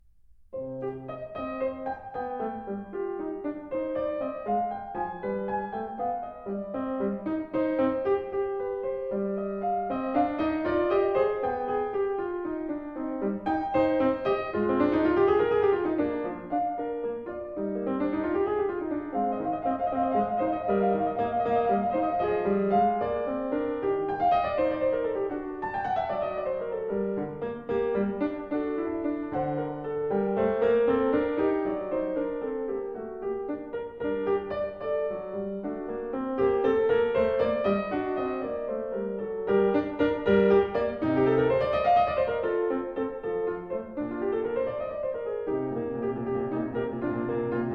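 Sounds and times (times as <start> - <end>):
sinfonia in C minor: 0.0 - 47.7.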